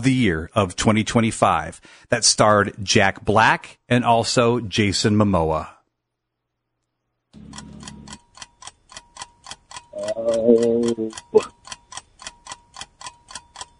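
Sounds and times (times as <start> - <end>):
speech: 0.0 - 5.8, 10.0 - 11.6
quiz countdown timer ticking: 7.4 - 13.7.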